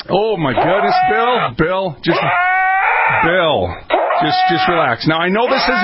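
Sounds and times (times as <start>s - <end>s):
speech: 0.1s - 2.4s, 3.1s - 5.8s
Nubian goat in heat bleating: 0.5s - 1.6s, 2.1s - 3.3s, 3.9s - 5.8s.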